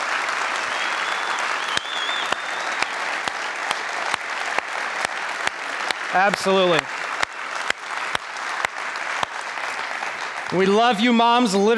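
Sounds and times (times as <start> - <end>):
crowd applauding: 0.0 - 11.7
faint whistle: 0.7 - 2.8
speech: 6.1 - 7.0, 10.5 - 11.7.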